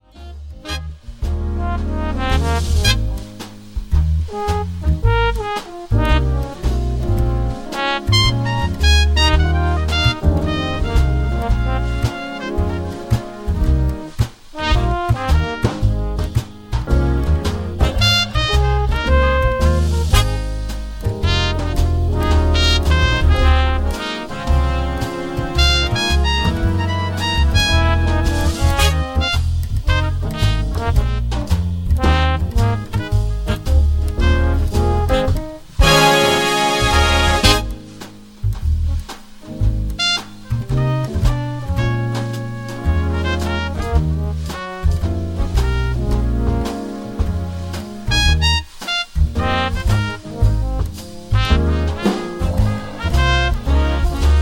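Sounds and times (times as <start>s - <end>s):
instrumental music: 0.0s - 54.4s.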